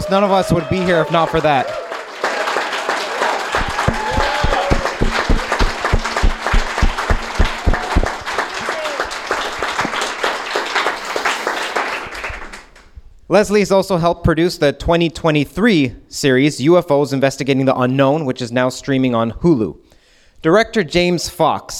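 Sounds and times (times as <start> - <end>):
audience applause: 0.0 - 12.8
speech: 0.1 - 1.8, 13.3 - 19.8, 20.4 - 21.7.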